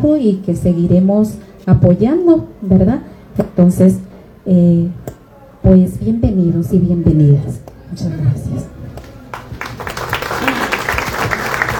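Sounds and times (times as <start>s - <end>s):
speech: 0.0s - 8.8s
faint murmuring voices: 0.6s - 11.7s
loud audience applause: 9.3s - 11.7s.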